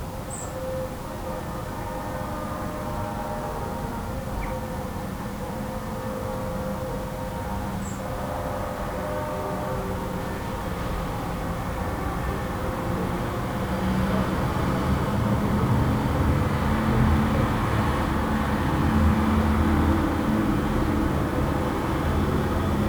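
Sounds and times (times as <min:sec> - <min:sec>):
sirens: 0:00.2 - 0:22.8
distant horns: 0:00.5 - 0:22.8.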